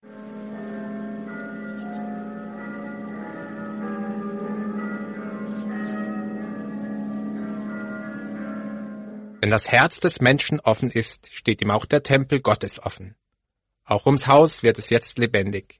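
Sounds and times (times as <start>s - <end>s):
church bells ringing across valleys: 0.0s - 10.7s
speech: 9.4s - 13.2s, 13.9s - 15.7s.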